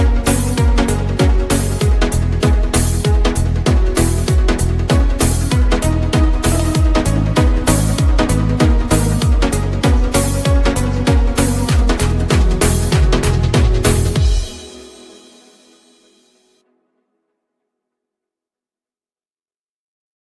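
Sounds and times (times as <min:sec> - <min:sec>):
Lezginka dance music remix: 0:00.0 - 0:16.1.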